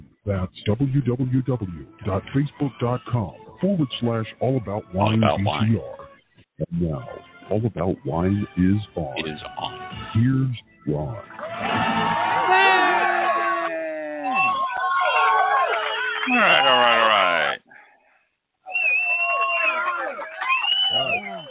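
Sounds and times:
speech: 0.2s - 6.0s, 6.6s - 11.4s, 16.2s - 17.4s
bus passengers cheering and whooping: 11.4s - 17.6s, 18.7s - 21.5s.

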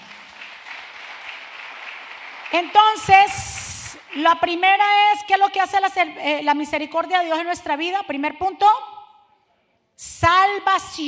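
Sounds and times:
audience applause: 0.0s - 3.0s
speech: 2.5s - 3.5s, 4.1s - 8.9s, 10.0s - 11.0s.

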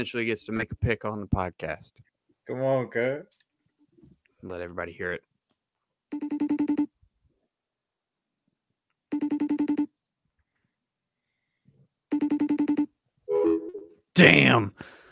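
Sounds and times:
speech: 0.0s - 3.4s, 4.4s - 5.3s, 14.2s - 14.9s
phone ringing on an outgoing call: 6.1s - 6.9s, 9.1s - 9.9s, 12.1s - 13.6s.

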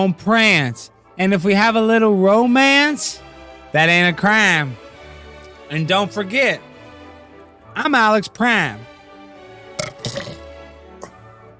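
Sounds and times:
speech: 0.0s - 4.9s, 5.7s - 6.7s, 7.8s - 8.9s
person burping: 9.8s - 11.3s.

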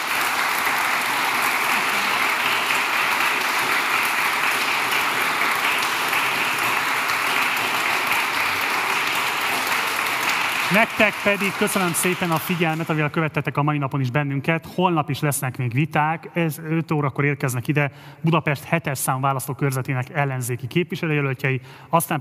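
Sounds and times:
large audience applause: 0.0s - 13.3s
speech: 10.7s - 22.1s.

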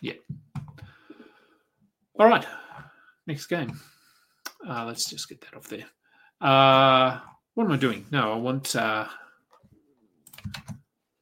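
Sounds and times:
speech: 0.0s - 0.2s, 2.2s - 2.6s, 3.3s - 3.9s, 4.7s - 9.2s
computer keys and buttons clicking while searching: 10.3s - 10.8s.

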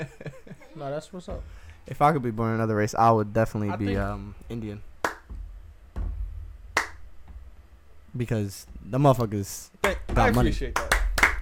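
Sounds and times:
speech: 0.8s - 4.9s, 8.2s - 10.9s
hand clapping: 5.0s - 5.5s, 6.7s - 7.3s, 9.2s - 11.3s.

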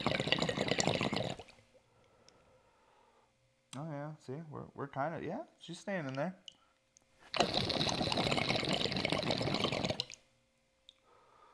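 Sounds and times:
liquid draining: 0.0s - 1.6s, 7.3s - 10.2s
speech: 4.3s - 6.6s, 7.4s - 8.1s.

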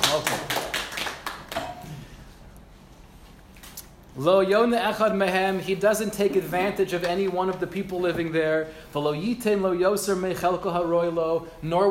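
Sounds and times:
few people clapping: 0.0s - 1.9s
speech: 4.2s - 11.8s.

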